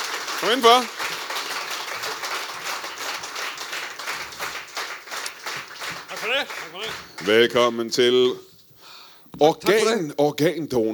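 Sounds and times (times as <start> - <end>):
audience applause at a live comedy talk show in Greve: 0.0 - 7.6
speech: 0.4 - 1.0, 6.2 - 8.5, 9.4 - 10.9.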